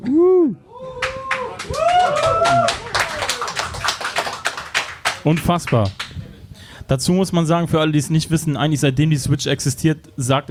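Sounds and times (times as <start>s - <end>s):
excited voices whooping and calling out: 0.0s - 3.6s
scattered applause: 0.8s - 6.3s
speech: 5.2s - 6.0s, 6.9s - 10.4s.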